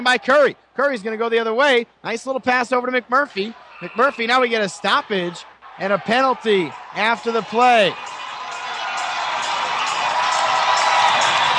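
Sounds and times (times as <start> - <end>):
speech: 0.0 - 8.2
hockey fans cheering: 3.4 - 11.5.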